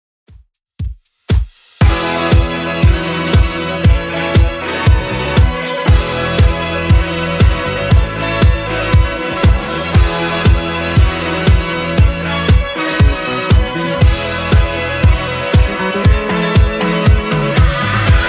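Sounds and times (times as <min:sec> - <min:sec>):
70s-style Redrum drum machine beat: 0:00.3 - 0:18.2.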